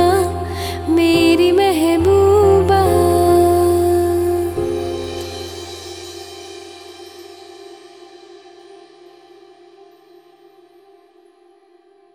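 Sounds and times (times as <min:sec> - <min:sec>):
woman singing a cover: 0:00.0 - 0:05.8.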